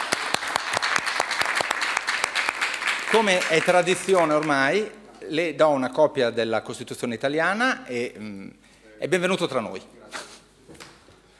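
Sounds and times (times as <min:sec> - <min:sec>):
audience applause: 0:00.0 - 0:04.8
speech: 0:03.1 - 0:10.0.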